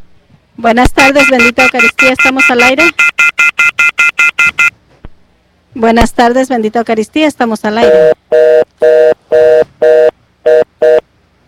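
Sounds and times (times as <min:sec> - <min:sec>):
speech: 0:00.6 - 0:03.1, 0:05.8 - 0:10.2
pulsed telephone tone after a dropped call: 0:01.0 - 0:04.7, 0:07.8 - 0:11.0.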